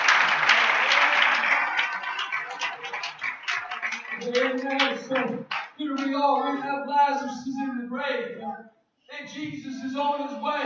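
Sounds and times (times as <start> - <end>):
audience clapping hands: 0.0 - 6.7
speech: 4.2 - 10.6.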